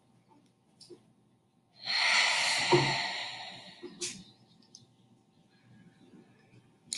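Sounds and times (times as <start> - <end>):
slow breathing in through the nose and out through the mouth: 1.8 - 4.3.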